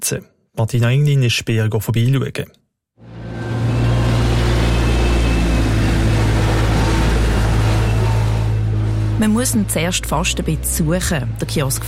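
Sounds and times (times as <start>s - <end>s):
speech: 0.1s - 2.6s, 9.2s - 11.8s
droning machinery: 3.0s - 11.8s
excavators driving past on construction site: 3.0s - 11.8s.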